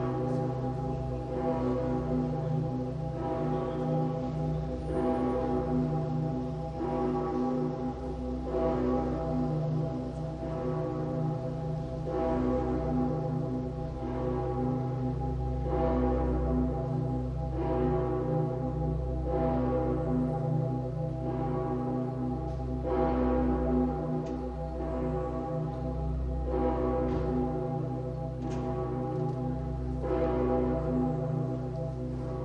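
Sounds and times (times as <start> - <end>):
cathedral bells ringing in full peal with the Petersglocke: 0.0 - 32.4.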